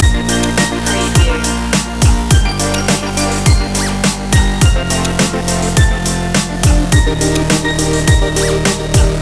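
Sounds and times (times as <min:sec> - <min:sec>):
joyful music loop: 0:00.0 - 0:09.2.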